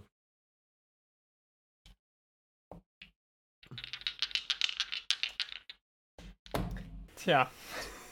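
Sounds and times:
dice being rolled: 3.0s - 6.6s
speech: 7.2s - 8.0s.

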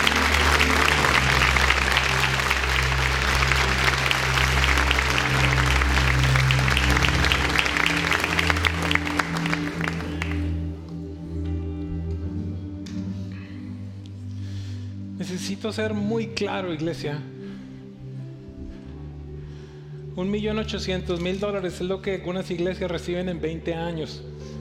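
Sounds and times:
loud audience applause: 0.0s - 10.6s
low steady organ or keyboard drone: 0.0s - 12.2s
speech: 15.6s - 17.3s, 20.2s - 24.5s.

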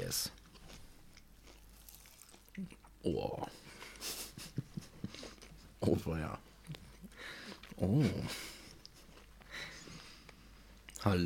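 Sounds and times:
person biting and chewing a dense heavy cake: 0.3s - 3.0s, 5.0s - 5.7s, 6.6s - 11.0s
speech: 2.6s - 3.7s, 5.8s - 6.8s, 7.8s - 8.5s, 11.0s - 11.2s
laughter: 3.7s - 5.6s, 7.8s - 9.1s.

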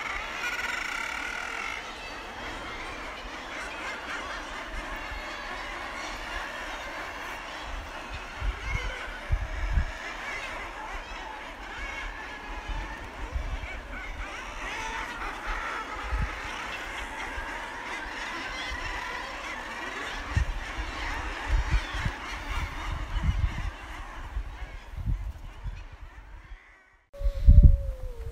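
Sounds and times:
male corncrake Crex crex calling: 0.0s - 28.2s.

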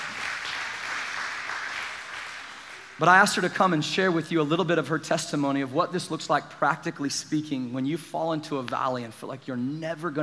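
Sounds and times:
audience applause: 0.0s - 3.0s
speech: 3.0s - 10.2s.

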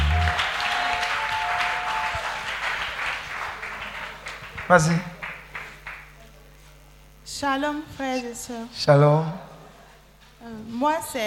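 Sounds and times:
audience applause at a French-speaking Christian gathering: 0.0s - 6.2s
speech: 4.7s - 5.2s, 7.4s - 9.5s, 10.4s - 11.2s.

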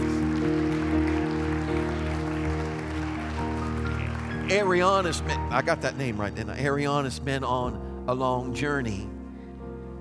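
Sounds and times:
audience clapping in praise: 0.0s - 6.2s
speech: 4.5s - 9.1s.

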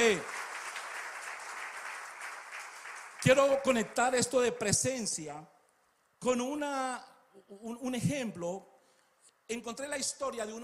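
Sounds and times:
audience applauding: 0.0s - 4.2s
speech: 0.1s - 0.3s, 3.2s - 5.5s, 6.2s - 8.7s, 9.5s - 10.6s.

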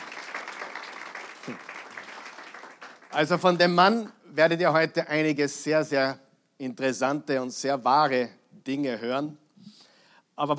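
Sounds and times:
audience applause: 0.0s - 3.3s
speech: 1.5s - 1.7s, 3.1s - 9.4s, 10.4s - 10.5s.

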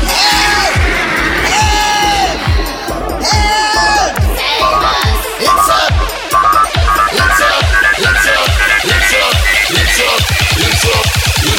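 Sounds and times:
drawn-out wails bending in pitch: 0.0s - 11.5s
people shouting and yelling: 0.0s - 11.5s.

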